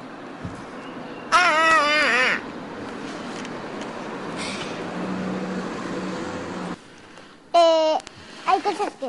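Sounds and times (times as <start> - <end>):
crow cawing: 1.3 - 2.4
car passing along a street: 2.1 - 6.9
speech: 8.7 - 9.0.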